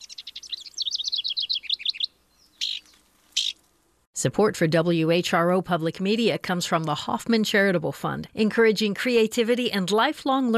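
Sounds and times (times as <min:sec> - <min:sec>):
downy woodpecker calling: 0:00.0 - 0:03.7
speech: 0:04.2 - 0:10.5.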